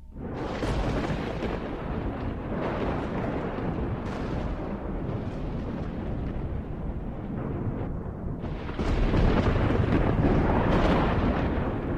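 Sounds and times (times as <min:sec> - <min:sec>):
thunder and lightning strikes: 0:00.2 - 0:11.9.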